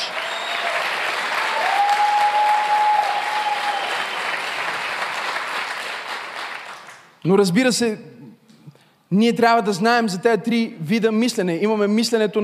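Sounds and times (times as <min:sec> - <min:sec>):
audience clapping: 0:00.0 - 0:07.2
speech: 0:07.2 - 0:08.1, 0:09.1 - 0:12.4.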